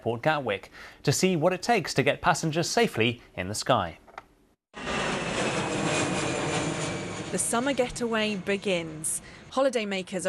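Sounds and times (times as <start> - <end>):
speech: 0.0 - 4.0, 7.3 - 10.2
aircraft engine roar at Gatwick Airport: 4.8 - 9.6.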